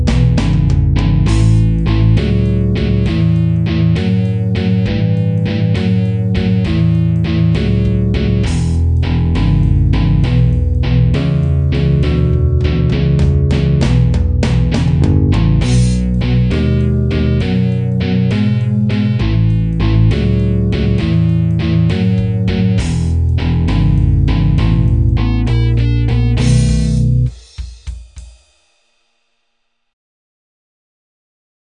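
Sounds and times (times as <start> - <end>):
blues shuffle drums: 0.0 - 1.7, 26.4 - 28.5
bass guitar: 0.0 - 27.3.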